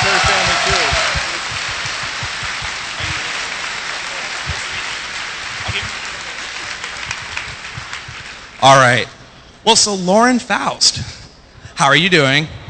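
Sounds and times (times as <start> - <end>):
audience applause: 0.0 - 8.8
speech: 8.6 - 11.2, 11.8 - 12.6.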